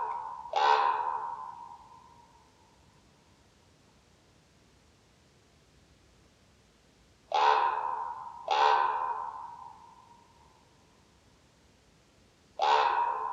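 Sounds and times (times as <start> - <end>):
common raven croaking: 0.0 - 2.0, 7.3 - 10.2, 12.6 - 13.3.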